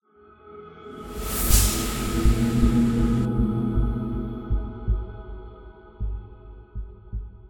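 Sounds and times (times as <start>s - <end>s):
transition sound: 1.0s - 4.4s.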